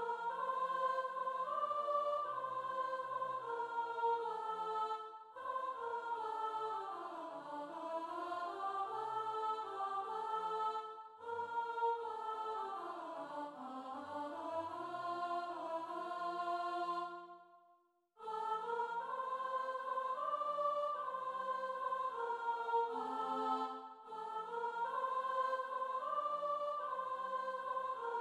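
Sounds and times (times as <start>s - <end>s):
soprano choir section singing: 0.0s - 17.5s, 18.2s - 28.2s.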